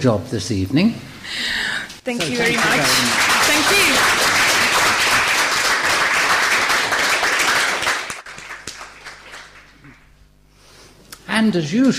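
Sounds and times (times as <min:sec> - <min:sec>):
speech: 0:00.0 - 0:04.4, 0:11.4 - 0:11.9
audience applause: 0:02.2 - 0:10.0.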